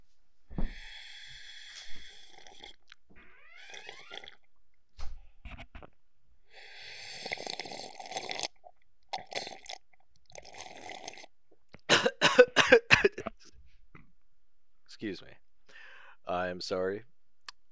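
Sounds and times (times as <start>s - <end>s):
sipping tea: 0.8s - 4.5s, 6.8s - 11.9s
person coughing after choking on tea: 11.9s - 13.4s
speech: 16.6s - 17.1s.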